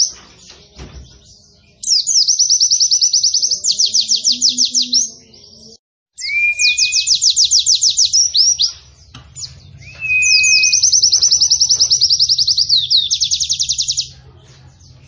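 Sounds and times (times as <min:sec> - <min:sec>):
white-eye singing long fast trills in a canary-like style: 0:06.2 - 0:14.8.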